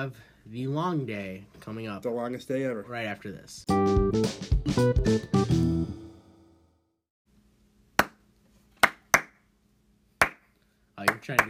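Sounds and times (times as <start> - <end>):
speech: 0.0 - 6.0, 11.2 - 11.4
person clapping: 8.8 - 9.4, 11.1 - 11.4.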